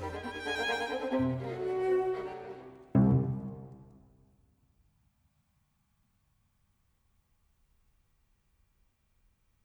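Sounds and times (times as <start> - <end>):
string quartet playing prestissimo intermezzo: 0.0 - 3.9.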